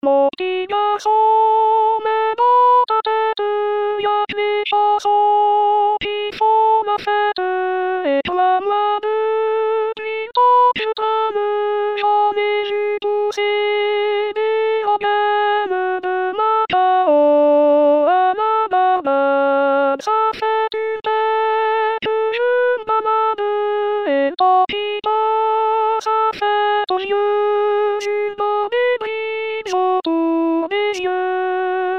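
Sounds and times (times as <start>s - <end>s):
alto singing a refrain: 0.0s - 31.9s.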